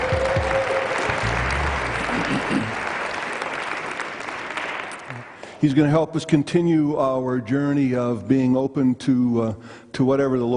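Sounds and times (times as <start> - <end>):
audience applause welcoming Pastor Will Mackey: 0.0 - 5.4
speech: 5.6 - 10.5.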